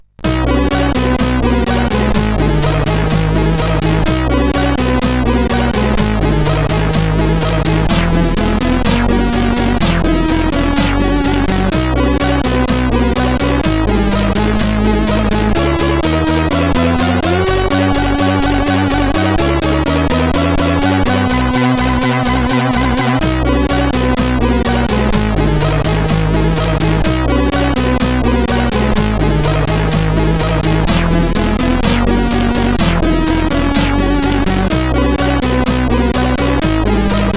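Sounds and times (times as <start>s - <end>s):
SID chip dance music on CSG 8580R5: 0.0s - 37.3s.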